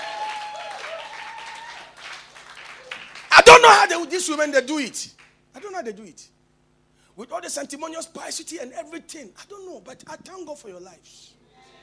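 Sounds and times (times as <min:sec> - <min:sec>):
audience clapping: 0:00.0 - 0:03.6, 0:05.1 - 0:05.7
speech: 0:03.5 - 0:06.4, 0:07.2 - 0:11.4.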